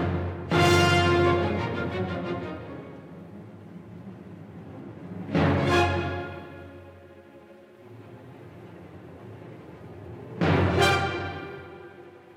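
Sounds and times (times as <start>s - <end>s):
orchestra playing a symphony: 0.0s - 3.8s, 4.4s - 7.2s, 10.4s - 12.3s.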